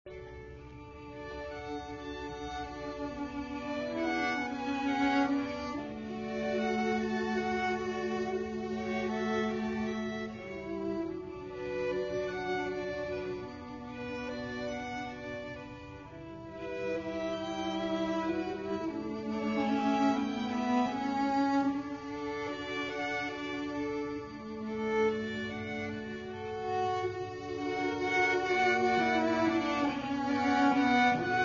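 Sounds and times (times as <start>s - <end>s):
quartet playing: 0.8s - 31.4s.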